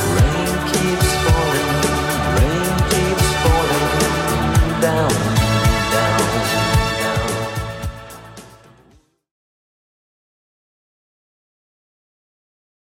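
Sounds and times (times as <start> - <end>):
80s-style beat at 110 bpm: 0.0 - 9.0.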